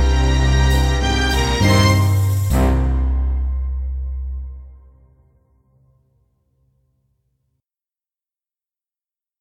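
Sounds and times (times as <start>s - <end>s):
drum kit backing: 0.0s - 4.8s.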